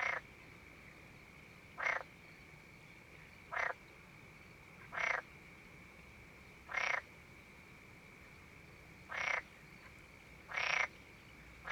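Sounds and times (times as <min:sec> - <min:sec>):
frog croaking: 0:00.0 - 0:00.2, 0:01.8 - 0:02.0, 0:03.5 - 0:03.8, 0:04.9 - 0:05.2, 0:06.7 - 0:07.0, 0:09.1 - 0:09.4, 0:10.5 - 0:10.9.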